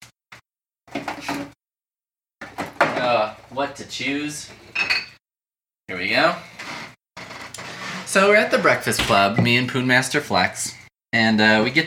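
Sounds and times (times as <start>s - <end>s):
speech: 3.5s - 5.0s, 5.9s - 6.5s, 8.1s - 11.8s
rustling and scraping: 6.6s - 8.5s
fridge door being pulled open: 8.8s - 9.6s.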